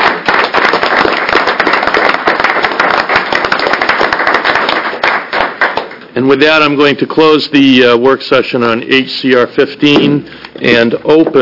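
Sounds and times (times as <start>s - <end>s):
round of applause: 0.0s - 6.1s
speech: 6.2s - 11.4s.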